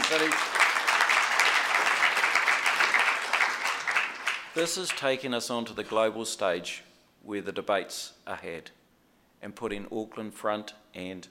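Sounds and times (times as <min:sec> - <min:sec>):
audience applause: 0:00.0 - 0:05.0
speech: 0:00.2 - 0:00.6, 0:04.6 - 0:08.8, 0:09.4 - 0:11.2.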